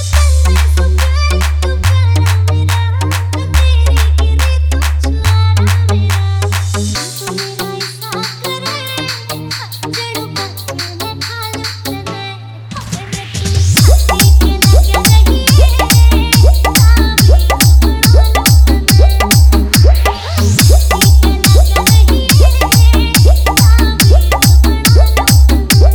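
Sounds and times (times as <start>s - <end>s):
Haryanvi DJ remix song with vibration bass: 0.1s - 25.9s.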